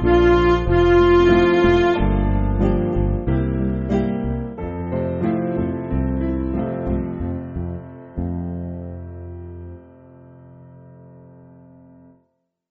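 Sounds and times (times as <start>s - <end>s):
MIDI church backing music: 0.0s - 9.7s.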